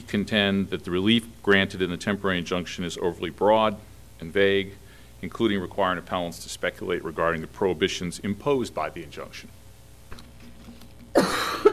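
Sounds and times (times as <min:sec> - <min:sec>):
speech: 0:00.1 - 0:09.6
sneeze or cough in courtroom: 0:11.2 - 0:11.7.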